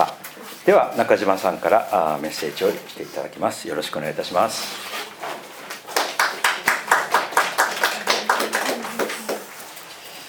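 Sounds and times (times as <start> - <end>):
speech: 0.0 - 5.2
audience clapping: 5.7 - 9.7.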